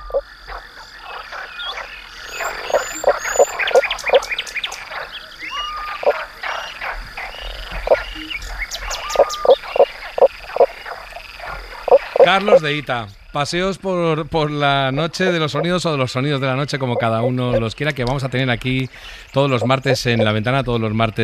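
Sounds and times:
frog calling underwater in clicking croaking pulses: 0.0s - 12.7s, 16.8s - 17.7s, 19.4s - 20.4s
faint chirps: 0.0s - 13.4s, 16.8s - 17.7s, 19.1s - 20.4s
speech: 12.3s - 21.2s.

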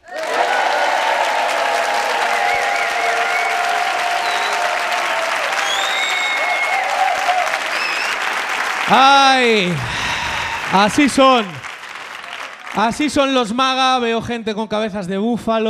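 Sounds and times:
large comedy show audience cheering and applauding as a MAGA crowd: 0.0s - 13.4s
sharp whistles: 4.2s - 4.8s, 5.5s - 6.9s, 7.7s - 8.3s
speech: 8.9s - 10.1s, 10.7s - 11.6s, 12.8s - 15.6s.

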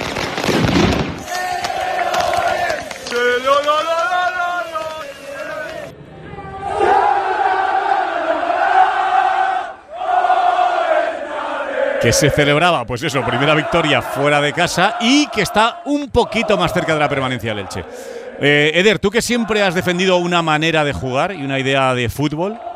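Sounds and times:
firecrackers exploding: 0.0s - 5.9s
about 500 Elche fans cheering: 1.2s - 22.7s
speech: 12.0s - 22.7s.

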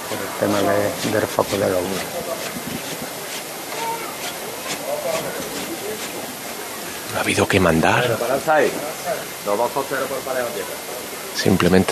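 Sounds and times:
men's footsteps on wooden float boards: 0.0s - 6.2s
murmur of voices: 0.0s - 11.9s
steady hiss: 0.0s - 11.9s
speech: 0.1s - 2.5s, 7.1s - 11.9s.

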